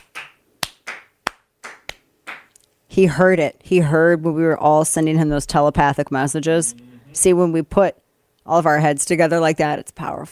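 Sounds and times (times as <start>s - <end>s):
audience clapping: 0.0s - 2.6s
speech: 2.9s - 10.3s.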